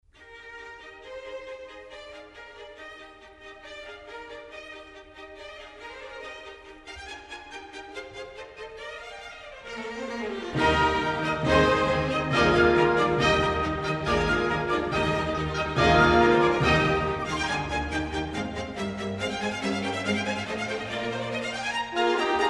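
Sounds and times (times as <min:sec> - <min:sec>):
trumpet concerto: 0:10.6 - 0:22.4.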